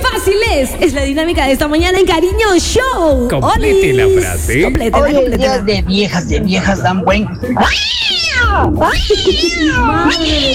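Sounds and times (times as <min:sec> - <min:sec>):
speech: 0:00.2 - 0:10.5
cat screeching meow: 0:07.6 - 0:10.5.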